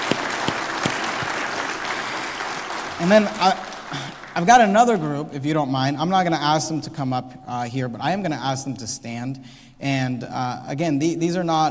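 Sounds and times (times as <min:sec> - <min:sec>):
audience round of applause: 0:00.0 - 0:04.7
speech: 0:03.0 - 0:11.7.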